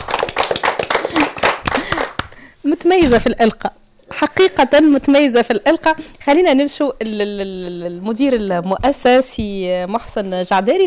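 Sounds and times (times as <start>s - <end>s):
audience clapping at a primary school event after a poetry recitation: 0.0s - 2.5s
speech: 2.6s - 10.8s.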